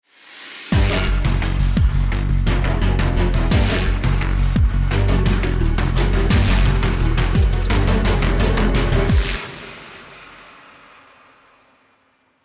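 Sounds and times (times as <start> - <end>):
ten second bomb timer countdown: 0.8 - 9.4.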